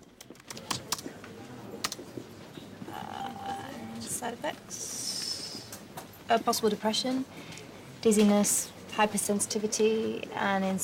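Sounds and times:
computer keys clicking as tamsulosin hydrochloride is typed into a database: 0:00.2 - 0:01.0
speech: 0:04.2 - 0:04.9, 0:06.3 - 0:10.8.

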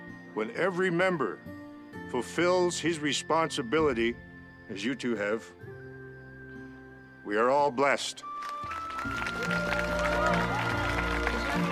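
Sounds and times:
speech: 0:00.4 - 0:05.6, 0:07.3 - 0:09.7
parents clapping: 0:08.3 - 0:11.7.

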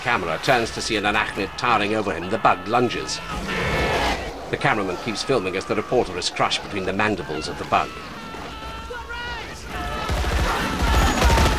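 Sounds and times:
speech: 0:00.0 - 0:03.7, 0:04.5 - 0:08.2
laughter: 0:00.0 - 0:11.5
troops firing guns at a giant arachnid bug: 0:09.4 - 0:11.5.

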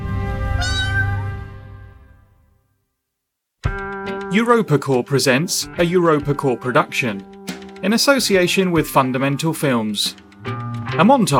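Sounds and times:
cat meowing in a film studio's animated logo intro: 0:00.5 - 0:01.3
speech: 0:04.3 - 0:11.3.

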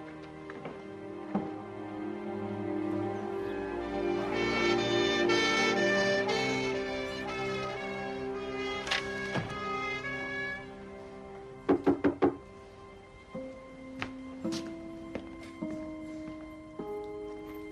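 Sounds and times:
soft sustained musical score: 0:00.0 - 0:17.7
quick firm knocks on a door: 0:11.7 - 0:12.4.

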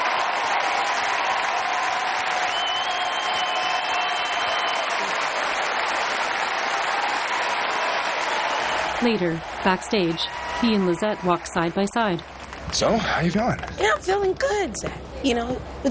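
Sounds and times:
large crowd applause during a standing ovation: 0:00.0 - 0:13.7
speech: 0:09.0 - 0:15.9.

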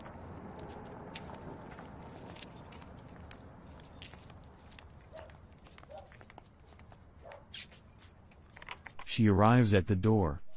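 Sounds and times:
footsteps walking away on rough surface: 0:00.0 - 0:08.9
metallic clinks and jangles: 0:01.1 - 0:09.1
speech: 0:09.2 - 0:10.4.

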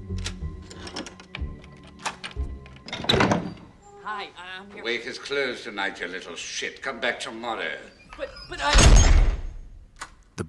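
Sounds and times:
front door being unlocked: 0:00.1 - 0:03.7
speech: 0:04.1 - 0:09.2.

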